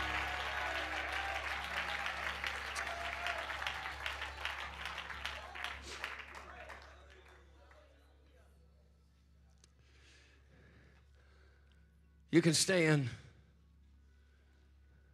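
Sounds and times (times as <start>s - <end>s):
audience clapping hands in praise: 0.0s - 8.0s
speech: 12.4s - 13.2s.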